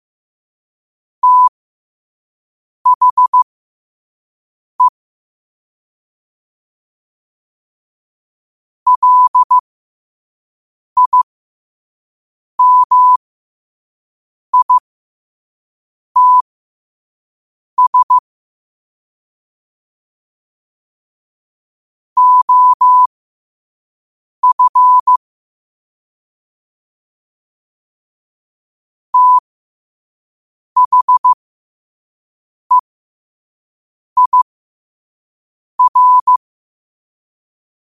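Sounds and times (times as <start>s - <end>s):
morse code at 5 wpm: 1.2s - 1.5s, 2.9s - 3.4s, 8.9s - 9.6s, 11.0s - 11.3s, 12.6s - 13.2s, 14.6s - 14.8s, 16.2s - 16.4s, 17.8s - 18.2s, 22.2s - 23.1s, 24.4s - 25.2s, 29.2s - 29.4s, 30.8s - 31.4s, 34.2s - 34.5s, 35.8s - 36.4s.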